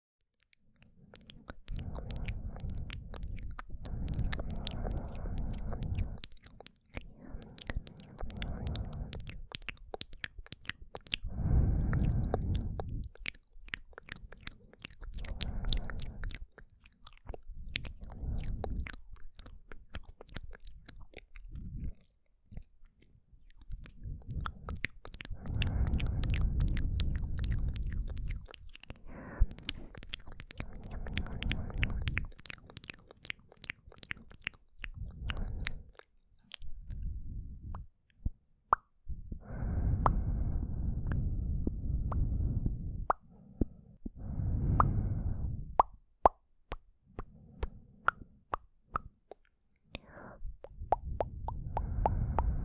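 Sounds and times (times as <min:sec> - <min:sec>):
pleasant mouth sounds: 0:00.8 - 0:22.8, 0:23.4 - 0:37.9, 0:38.7 - 0:43.3, 0:44.2 - 0:52.6.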